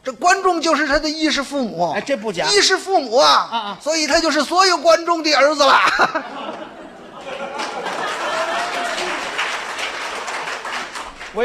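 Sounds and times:
speech: 0:00.1 - 0:06.8
laughter: 0:05.4 - 0:10.9
audience applause: 0:06.6 - 0:11.4.

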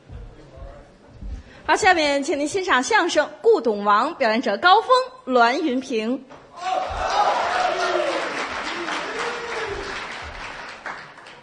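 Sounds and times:
speech: 0:01.7 - 0:06.8
voices shouting and whooping: 0:06.6 - 0:10.0
crowd applauding: 0:06.6 - 0:11.4.

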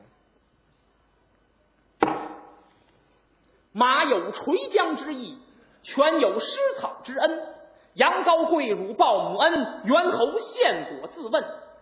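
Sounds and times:
storyteller's wooden block slapped on table: 0:02.0 - 0:02.6
speech: 0:03.8 - 0:11.6.

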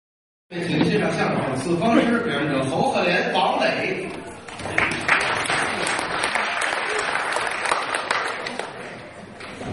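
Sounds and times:
speech: 0:00.5 - 0:05.2
audience applause: 0:04.4 - 0:09.6.

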